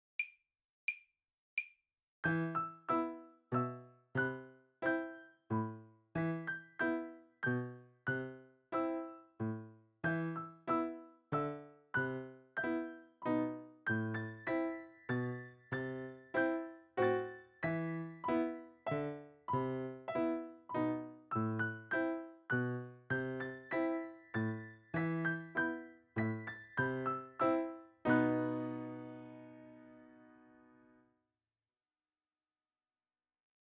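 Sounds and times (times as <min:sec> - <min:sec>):
piano piece: 0:02.2 - 0:31.1.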